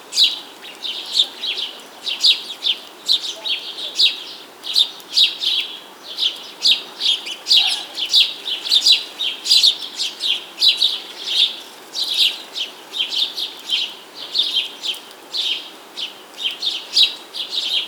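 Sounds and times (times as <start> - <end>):
bird chirping with short high bright notes: 0.1 - 17.8.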